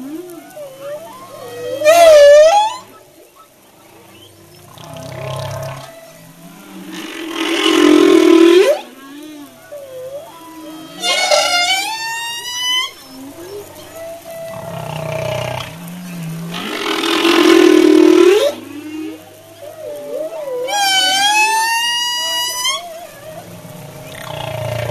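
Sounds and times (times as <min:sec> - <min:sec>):
humpback whale song: 0:00.0 - 0:24.8.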